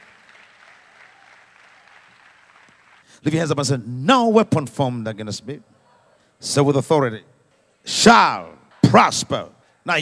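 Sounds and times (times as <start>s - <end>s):
crowd audience clapping hands: 0.0s - 3.2s
speech: 3.2s - 5.7s, 6.4s - 10.0s.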